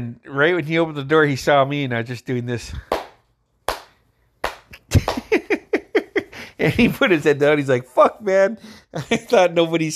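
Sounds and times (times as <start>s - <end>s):
speech: 0.0s - 3.0s, 6.6s - 9.9s
hand clapping: 2.8s - 5.7s
laughter: 4.8s - 7.1s.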